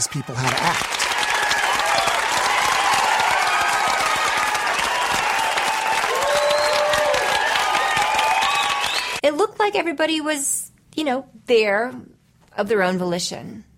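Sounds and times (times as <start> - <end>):
speech: 0.0 - 1.1, 9.6 - 13.7
large crowd applauding vigorously: 0.0 - 9.2
scattered high whoops and whistles: 6.1 - 9.2.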